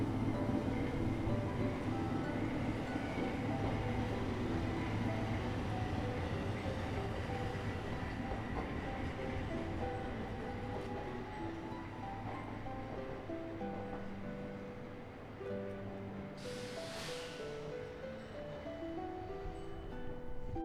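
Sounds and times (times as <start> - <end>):
streetcar stopping and departing: 0.0 - 20.6.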